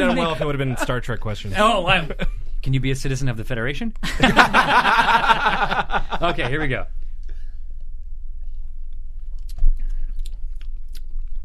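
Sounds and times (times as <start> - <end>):
laughter: 0.0 - 1.0, 1.9 - 2.3, 4.0 - 6.8
speech: 0.0 - 7.0
sorrel being chewed and bitten: 9.2 - 11.4.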